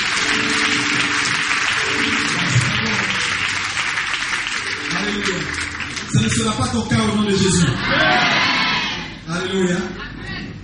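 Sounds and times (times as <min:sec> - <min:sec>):
church congregation clapping to acclaim the Lord: 0:00.0 - 0:07.4
speech: 0:06.4 - 0:08.4, 0:09.5 - 0:10.0.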